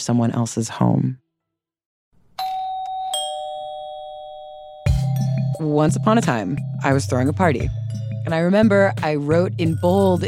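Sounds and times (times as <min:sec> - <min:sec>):
speech: 0:00.0 - 0:01.2, 0:05.6 - 0:10.2
two-tone doorbell chime: 0:02.4 - 0:06.8.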